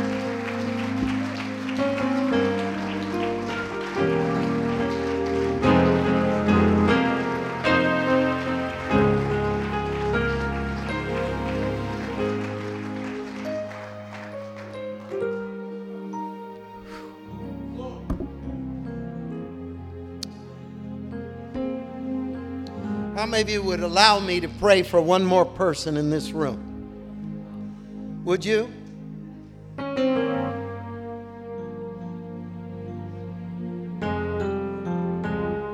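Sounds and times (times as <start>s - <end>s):
audience clapping: 0.0s - 18.5s
sustained keyboard or organ chords: 0.0s - 35.7s
speech: 23.2s - 26.7s, 28.2s - 28.8s.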